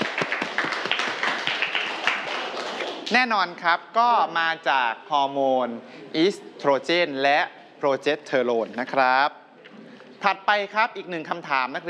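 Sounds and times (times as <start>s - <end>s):
classroom students clapping: 0.0s - 3.2s
speech: 3.1s - 9.4s, 10.2s - 11.8s.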